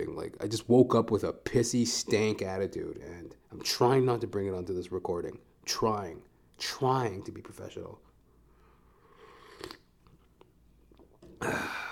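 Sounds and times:
speech: 0.0s - 8.1s, 11.4s - 11.8s
slurping coffee: 9.1s - 10.2s.

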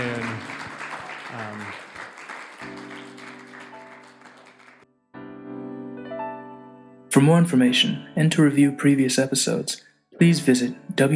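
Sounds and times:
audience applause: 0.0s - 4.8s
speech: 7.1s - 11.1s.

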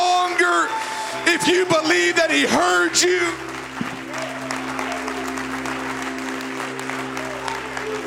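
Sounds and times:
audience clapping hands: 0.0s - 8.0s
speech: 1.3s - 4.0s.

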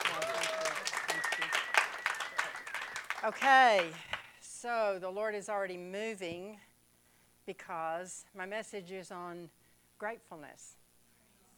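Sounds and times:
audience applause: 0.0s - 4.0s
speech: 3.2s - 6.7s, 7.5s - 10.8s.

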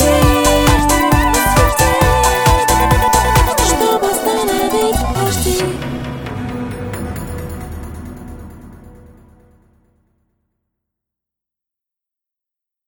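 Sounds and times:
dance remix music: 0.0s - 7.2s.

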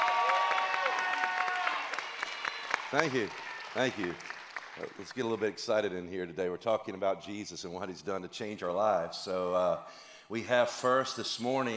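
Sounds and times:
audience applause: 0.0s - 5.4s
speech: 2.9s - 11.7s.

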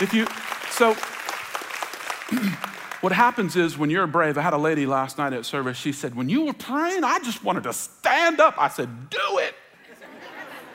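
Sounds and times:
speech: 0.0s - 1.2s, 2.3s - 9.6s
audience clapping: 0.0s - 3.8s
laughter: 9.8s - 10.7s.

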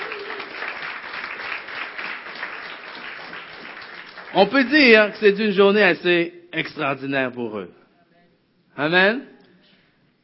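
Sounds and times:
audience applauding: 0.0s - 5.2s
speech: 4.4s - 7.8s, 8.8s - 9.3s.

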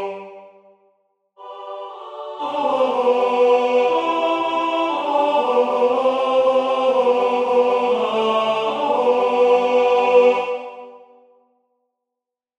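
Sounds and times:
tenor singing in a chorus of shepherds: 1.4s - 11.1s.

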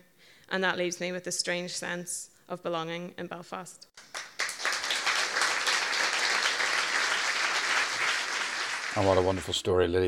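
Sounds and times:
speech: 0.5s - 4.1s, 9.0s - 10.0s
audience applause: 4.0s - 9.7s.

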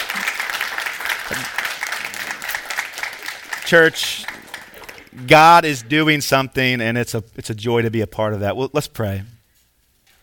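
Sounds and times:
audience applause: 0.0s - 5.3s
speech: 1.3s - 1.6s, 3.7s - 4.3s, 5.2s - 9.4s.

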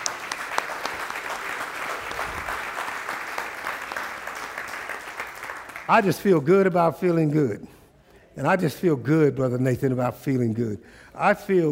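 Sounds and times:
audience hand clapping: 0.0s - 6.2s
speech: 5.9s - 7.8s, 8.4s - 11.6s.

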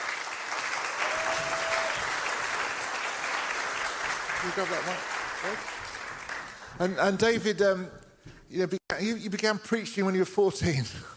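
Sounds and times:
audience applause: 0.0s - 7.0s
speech: 4.4s - 5.8s, 6.8s - 11.1s.

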